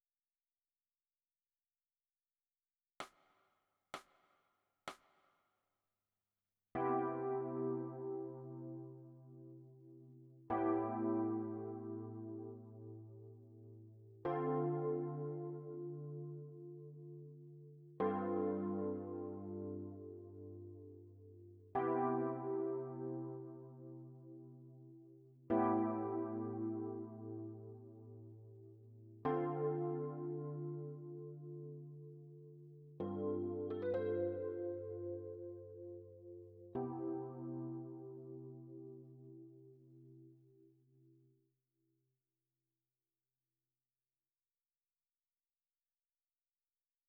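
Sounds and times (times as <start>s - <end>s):
electric piano: 6.8s - 40.7s.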